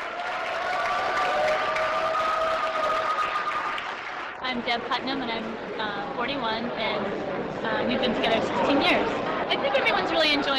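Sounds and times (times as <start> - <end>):
shouts and whoops: 0.0 - 3.9
crowd clapping and cheering: 0.0 - 4.6
speech: 4.5 - 10.5.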